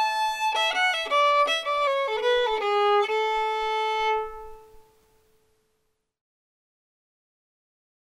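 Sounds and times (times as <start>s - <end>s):
fiddle: 0.0s - 5.1s.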